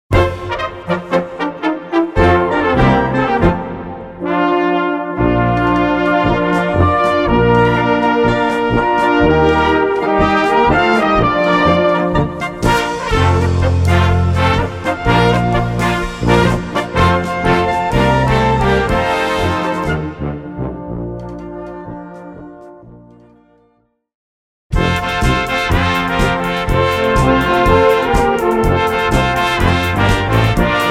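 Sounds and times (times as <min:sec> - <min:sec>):
polka music: 0:00.1 - 0:23.4, 0:24.7 - 0:30.8.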